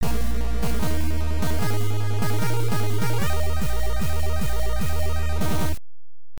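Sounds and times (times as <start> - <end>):
battle success victory music: 0.0 - 5.8.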